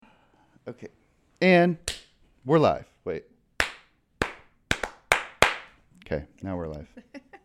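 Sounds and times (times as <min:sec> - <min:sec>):
speech: 0:00.7 - 0:03.3, 0:06.1 - 0:07.2
sharp hand claps: 0:01.9 - 0:02.1, 0:03.6 - 0:05.8.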